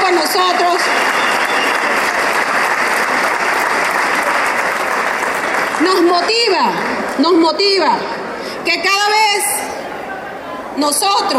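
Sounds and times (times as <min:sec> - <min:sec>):
audience applause: 0:00.0 - 0:07.2
speech: 0:05.9 - 0:09.6, 0:10.8 - 0:11.3.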